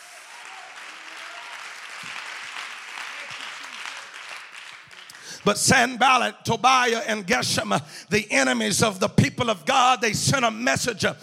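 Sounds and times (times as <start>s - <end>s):
audience clapping hands: 0.0s - 6.0s
speech: 5.4s - 11.2s.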